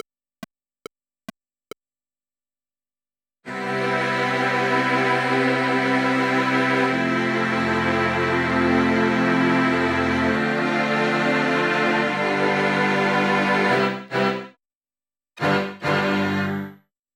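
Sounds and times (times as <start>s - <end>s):
strings: 3.5s - 14.5s, 15.4s - 16.8s.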